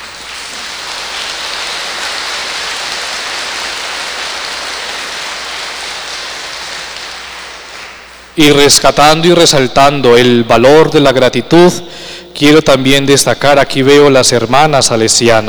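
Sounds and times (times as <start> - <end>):
audience applause: 0.0 - 8.4
speech: 8.4 - 15.4.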